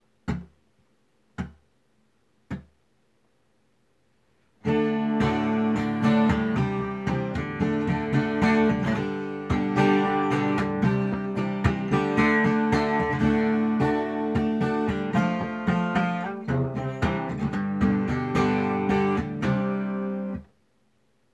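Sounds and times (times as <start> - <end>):
acoustic music: 4.6 - 20.4.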